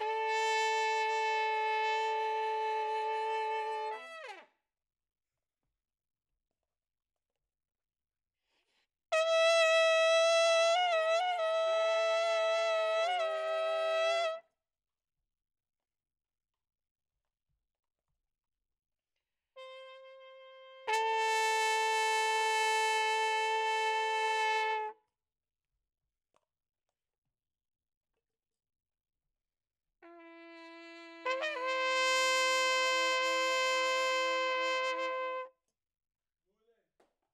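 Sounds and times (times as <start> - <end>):
trumpet: 0.0 - 4.5, 9.1 - 14.5, 19.6 - 25.0, 30.0 - 35.6.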